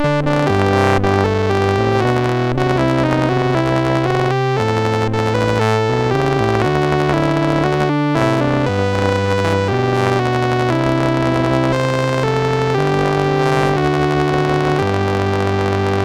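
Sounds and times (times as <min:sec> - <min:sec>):
MOS6581R4 SID chip music: 0:00.0 - 0:16.0.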